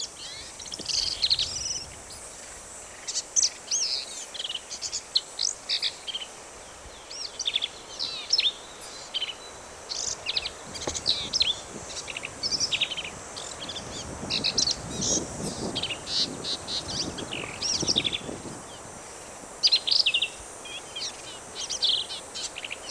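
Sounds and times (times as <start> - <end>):
Black-capped vireo song: 0.0 - 22.8.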